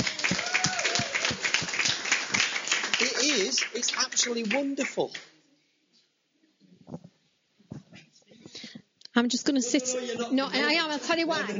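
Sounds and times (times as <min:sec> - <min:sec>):
crowd clapping: 0:00.0 - 0:05.4
speech: 0:03.5 - 0:05.3, 0:09.2 - 0:11.5.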